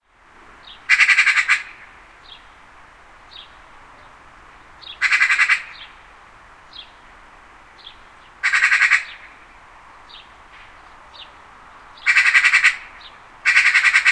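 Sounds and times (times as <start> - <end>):
Eurasian magpie uttering harsh rasping chack notes: 0.9 - 1.8, 5.0 - 5.9, 8.4 - 9.3, 12.0 - 14.1.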